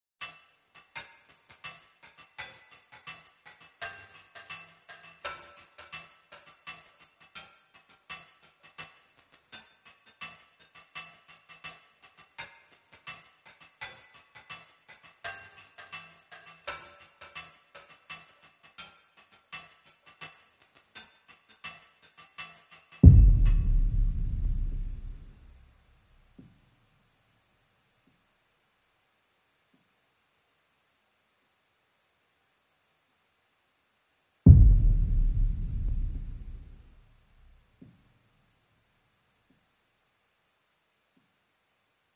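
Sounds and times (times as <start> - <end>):
drums: 0.2 - 26.6, 34.5 - 38.0.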